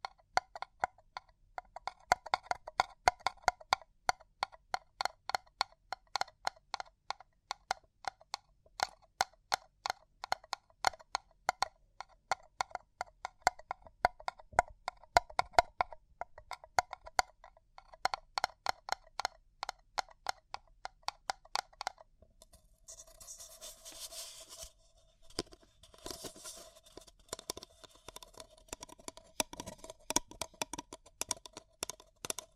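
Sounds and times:
tapping and crinkling on a paper cup: 0.0 - 32.5
scratching and rustling: 22.9 - 30.2.

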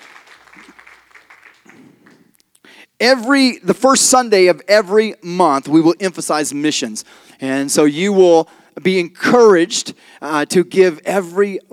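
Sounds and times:
audience hand clapping: 0.0 - 2.3
speech: 3.0 - 11.7.

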